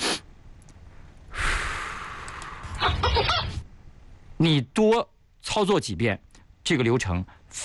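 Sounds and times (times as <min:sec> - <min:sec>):
breathing exercise with quick nasal inhales and slow mouth exhale: 0:00.9 - 0:02.8
speech: 0:04.4 - 0:07.6.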